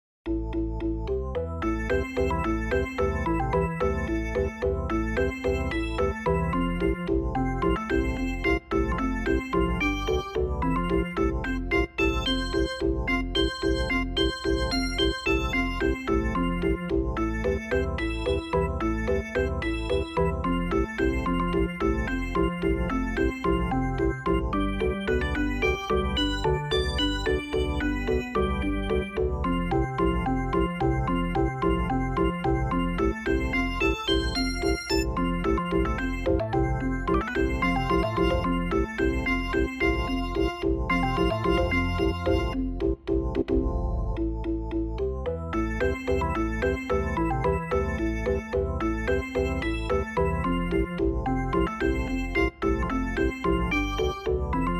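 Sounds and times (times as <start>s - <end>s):
waltz percussion: 0.3s - 54.7s.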